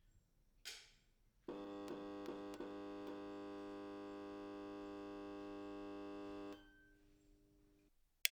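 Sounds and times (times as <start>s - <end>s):
fluorescent lights turning on and off: 1.5s - 6.6s.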